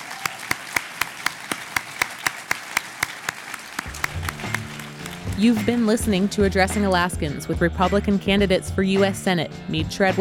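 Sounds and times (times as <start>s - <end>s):
audience applause for the candidates: 0.0s - 5.4s
speech: 5.4s - 10.2s.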